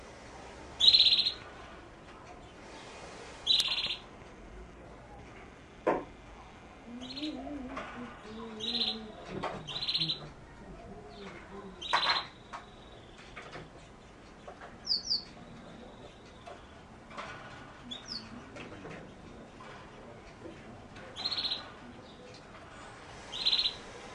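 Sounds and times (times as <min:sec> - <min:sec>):
canary song: 0:00.7 - 0:01.5, 0:03.4 - 0:04.1, 0:06.9 - 0:07.4, 0:08.2 - 0:17.0, 0:17.8 - 0:19.6, 0:20.4 - 0:22.5, 0:23.2 - 0:24.0.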